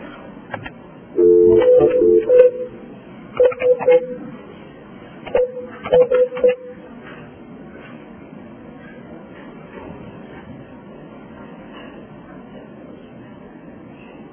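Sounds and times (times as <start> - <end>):
telephone long tone: 1.2 - 2.7
touch-tone beeps of a telephone number being dialed: 1.2 - 2.8, 3.4 - 4.2.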